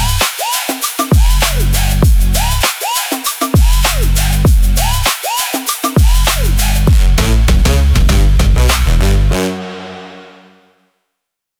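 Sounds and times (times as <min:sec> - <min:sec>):
street hip hop rap battle: 0:00.0 - 0:09.0.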